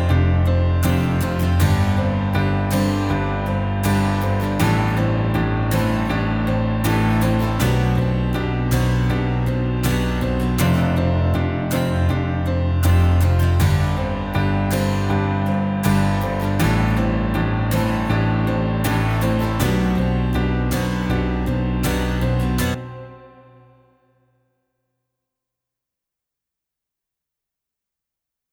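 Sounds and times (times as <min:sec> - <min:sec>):
rock pop ballad with guitar: 0:00.0 - 0:22.8.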